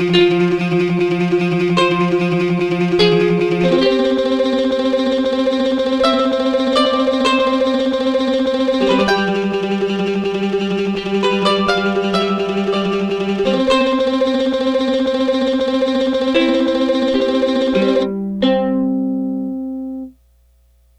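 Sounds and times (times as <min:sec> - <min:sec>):
tremolo mandolin: 0:00.0 - 0:20.2.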